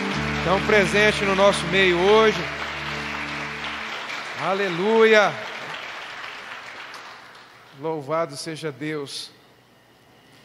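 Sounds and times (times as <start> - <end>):
loud round of applause: 0.0 - 7.9
speech: 0.4 - 2.6, 4.4 - 5.5, 7.8 - 9.4.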